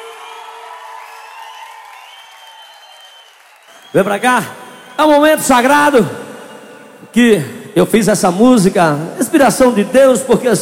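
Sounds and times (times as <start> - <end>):
audience applauding: 0.0 - 5.2
audience cheering: 0.0 - 6.0
speech: 3.7 - 6.2, 7.0 - 10.6.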